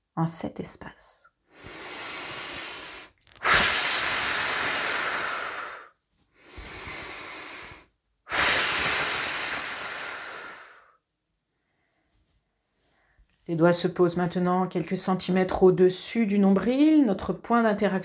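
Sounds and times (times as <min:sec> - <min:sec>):
speech: 0:00.2 - 0:01.8, 0:13.5 - 0:18.0
slow breathing during a guided relaxation exercise: 0:01.5 - 0:11.0, 0:11.6 - 0:13.3.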